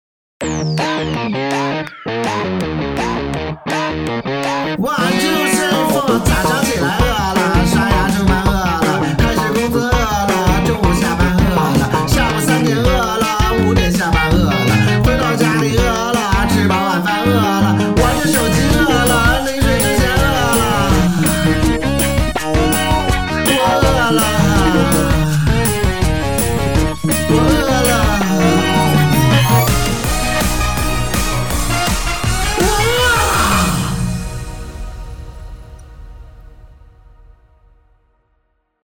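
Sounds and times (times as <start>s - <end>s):
cool music: 0.4s - 38.4s.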